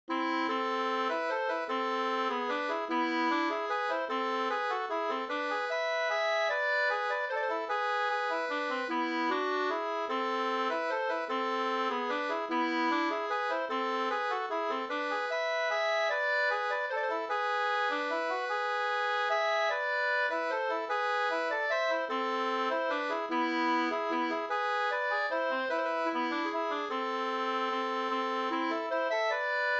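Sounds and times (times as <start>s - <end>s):
waltz music: 0.1s - 29.7s.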